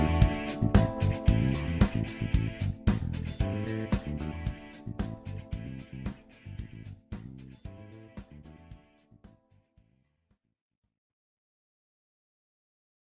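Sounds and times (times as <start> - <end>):
victory theme music: 0.0 - 6.6.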